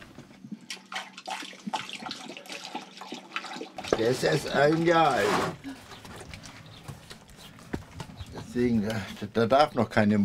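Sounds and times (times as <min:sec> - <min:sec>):
water being poured into a container: 0:00.7 - 0:05.2
speech: 0:04.0 - 0:05.6, 0:08.6 - 0:10.2.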